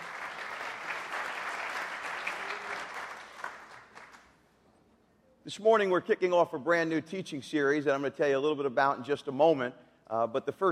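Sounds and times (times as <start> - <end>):
church congregation applauding after worship: 0.0 - 4.4
speech: 5.5 - 10.6.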